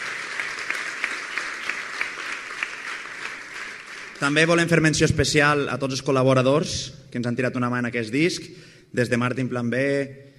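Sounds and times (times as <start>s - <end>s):
audience applause: 0.0s - 4.6s
speech: 4.2s - 10.3s.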